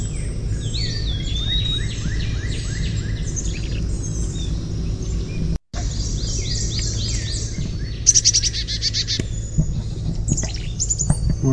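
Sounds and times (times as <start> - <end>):
Carolina chickadee calls: 0.0 - 11.5
low rumble: 0.0 - 11.5.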